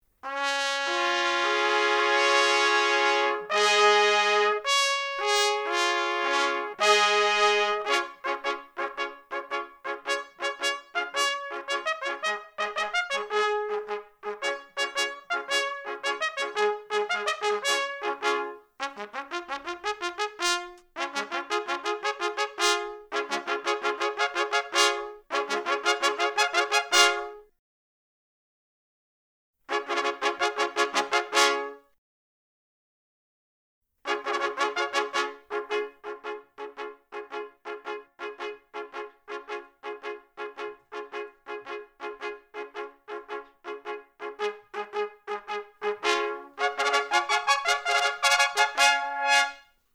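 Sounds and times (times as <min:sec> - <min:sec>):
finale fanfare: 0:00.2 - 0:27.5, 0:29.7 - 0:31.9, 0:34.1 - 0:49.7.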